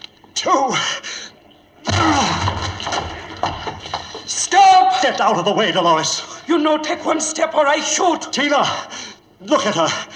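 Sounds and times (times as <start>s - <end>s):
speech: 0.4s - 1.2s, 5.0s - 10.1s
locked door being broken down: 1.9s - 4.1s.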